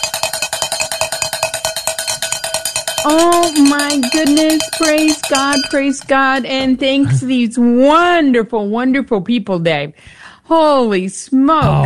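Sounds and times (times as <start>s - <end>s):
cowbell ringing: 0.0s - 7.0s
speech: 3.0s - 11.8s.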